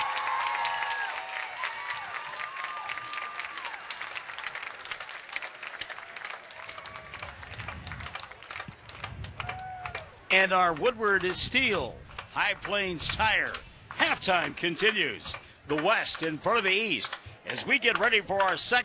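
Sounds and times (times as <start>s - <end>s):
stadium crowd applauding honor band: 0.0s - 10.2s
speech: 10.4s - 18.8s.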